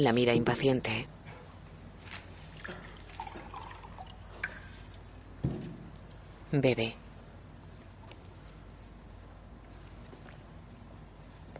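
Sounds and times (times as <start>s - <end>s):
speech: 0.0s - 1.2s, 6.5s - 7.0s
water poured from a jug: 2.5s - 4.9s.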